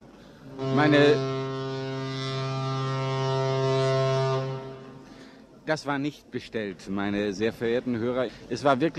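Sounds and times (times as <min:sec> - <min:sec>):
ship horn blast at a harbour: 0:00.2 - 0:05.4
speech: 0:00.7 - 0:01.4, 0:05.7 - 0:08.9.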